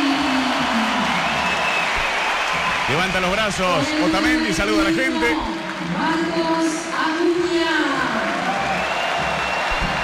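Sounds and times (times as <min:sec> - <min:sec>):
stadium crowd clapping as a football player leaves the field: 0:00.0 - 0:10.0
speech: 0:02.9 - 0:07.9.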